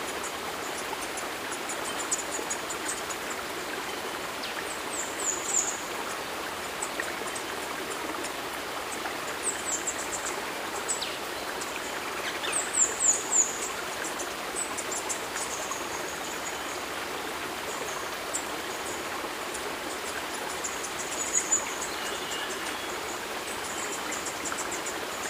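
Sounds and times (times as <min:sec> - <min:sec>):
forest river flowing: 0:00.0 - 0:25.2.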